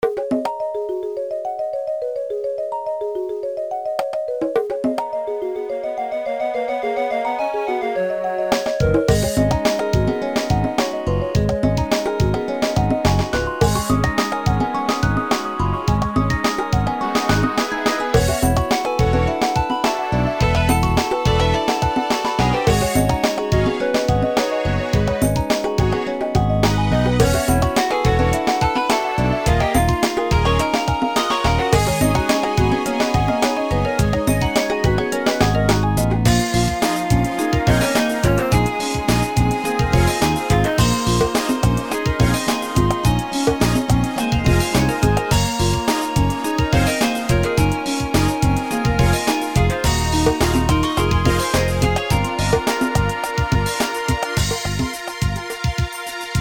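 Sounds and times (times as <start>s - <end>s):
jungle background music: 0.0s - 56.3s.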